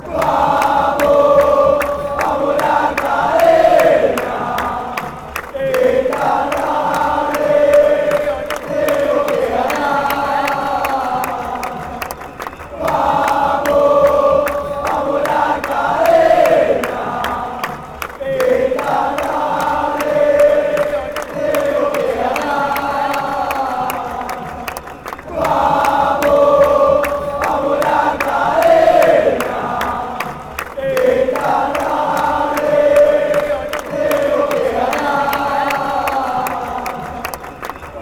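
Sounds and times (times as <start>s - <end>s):
football fans chanting: 0.0s - 38.0s.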